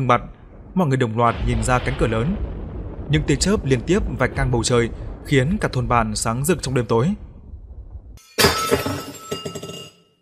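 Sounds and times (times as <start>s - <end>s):
speech: 0.0s - 2.5s, 3.1s - 7.3s
bowl falling and shattering: 8.2s - 10.1s.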